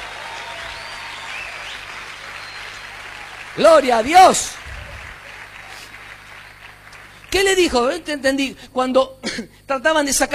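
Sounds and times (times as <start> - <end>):
audience applause: 0.0 - 8.0
speech: 3.6 - 4.6, 7.3 - 10.3.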